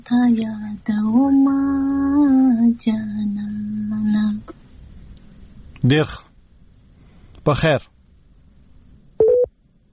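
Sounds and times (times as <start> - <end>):
speech: 0.0 - 4.2, 5.8 - 6.3, 7.4 - 7.9
telephone line tone while dialing a number: 9.2 - 9.5.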